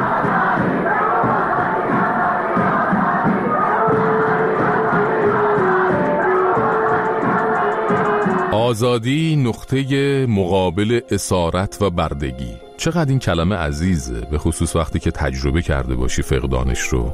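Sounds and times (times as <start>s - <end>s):
large crowd chanting a revolutionary slogan: 0.0s - 8.6s
speech: 8.7s - 17.1s.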